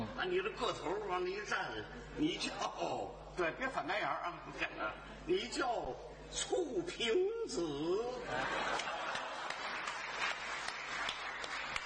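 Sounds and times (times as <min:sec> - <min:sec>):
speech: 0:00.2 - 0:09.0
laughter: 0:08.1 - 0:10.4
audience clapping: 0:08.6 - 0:11.8.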